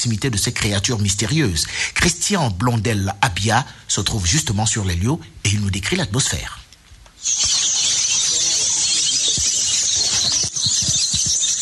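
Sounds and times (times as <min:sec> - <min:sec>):
speech: 0:00.0 - 0:06.6, 0:07.2 - 0:07.6
birds chirping in a deep forest: 0:07.2 - 0:11.6.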